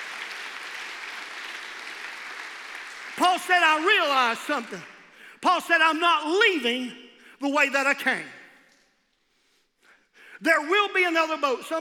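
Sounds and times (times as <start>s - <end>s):
audience clapping: 0.0s - 5.0s
speech: 3.2s - 8.4s, 10.4s - 11.7s.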